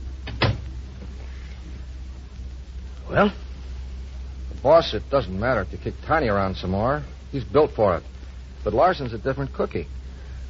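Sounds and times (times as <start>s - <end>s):
steady low hum: 0.0s - 10.4s
door shutting with a scraping swing and solid thud: 0.2s - 0.7s
speech: 3.1s - 3.4s, 4.6s - 10.0s.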